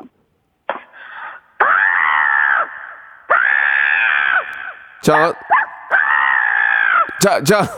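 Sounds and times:
person imitating a crow's caw: 0:01.6 - 0:07.7
speech: 0:05.0 - 0:05.5, 0:07.2 - 0:07.7.

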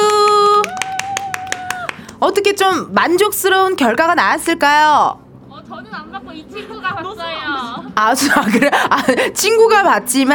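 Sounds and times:
hand clapping: 0:00.0 - 0:02.2
speech: 0:02.2 - 0:10.3.

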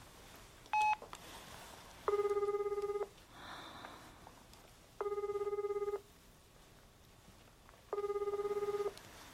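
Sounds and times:
telephone dialing beeps: 0:00.7 - 0:01.0, 0:02.1 - 0:03.1, 0:05.0 - 0:06.0, 0:07.9 - 0:09.0
telephone ringback tones: 0:02.1 - 0:03.1, 0:05.0 - 0:06.1, 0:07.9 - 0:09.0.

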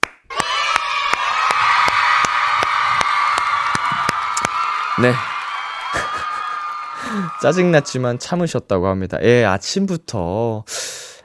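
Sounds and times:
applause: 0:00.0 - 0:08.1
cheering: 0:00.3 - 0:08.5
speech: 0:05.0 - 0:05.3, 0:07.4 - 0:10.8
laughter: 0:05.8 - 0:08.1.

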